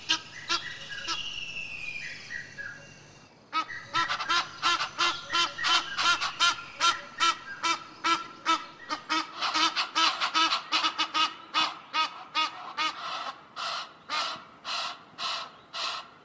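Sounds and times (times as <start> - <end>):
Egyptian geese honking alarm calls: 3.6 - 16.1.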